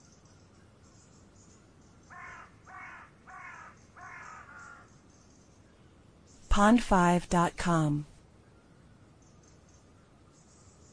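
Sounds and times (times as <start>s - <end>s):
background hiss: 0.0s - 10.9s
bird cawing: 2.0s - 5.0s
speech: 6.6s - 8.1s.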